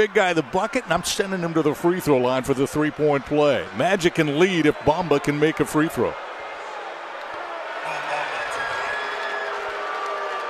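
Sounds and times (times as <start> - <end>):
speech: 0.0 - 6.3
basketball arena crowd cheering and murmuring: 0.0 - 10.4.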